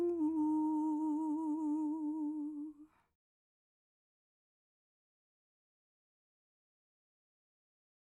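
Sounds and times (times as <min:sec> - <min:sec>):
female vocal in mono: 0:00.0 - 0:02.9.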